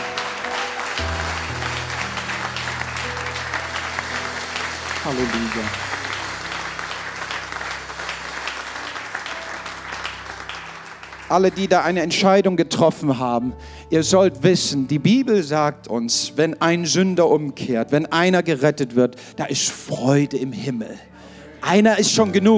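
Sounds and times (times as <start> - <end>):
audience applause: 0.0 - 12.1
speech: 5.0 - 5.9, 11.3 - 22.5.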